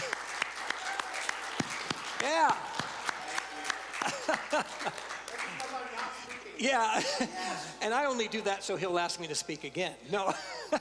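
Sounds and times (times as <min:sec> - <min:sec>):
audience applause: 0:00.0 - 0:06.6
speech: 0:02.2 - 0:02.7, 0:04.3 - 0:05.0, 0:06.6 - 0:10.7
laughter: 0:03.6 - 0:07.8, 0:10.2 - 0:10.7.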